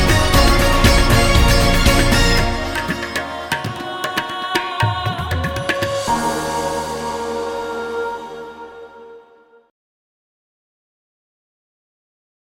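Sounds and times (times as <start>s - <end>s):
beauty makeup commercial background music: 0.0s - 9.6s.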